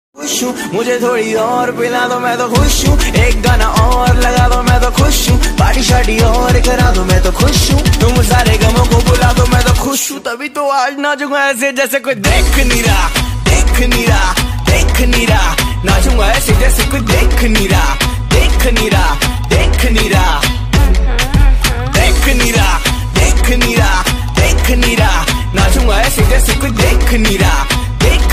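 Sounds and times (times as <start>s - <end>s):
Punjabi ringtone music: 0.2s - 11.1s, 12.2s - 28.3s.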